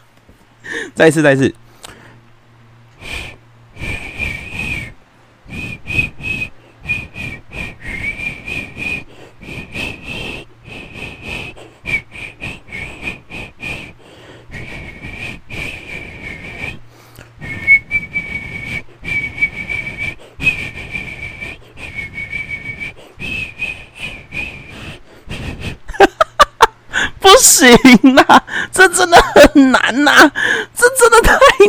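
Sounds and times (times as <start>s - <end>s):
speech: 0.6s - 1.6s
person whistling: 3.0s - 16.8s, 17.4s - 26.7s
laughter: 25.8s - 26.8s, 27.6s - 30.2s, 31.1s - 31.6s.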